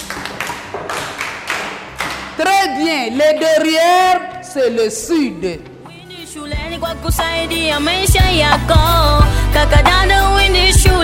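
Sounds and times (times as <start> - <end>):
classroom group clapping in unison: 0.0 - 2.6
speech: 2.4 - 5.7, 6.4 - 11.0.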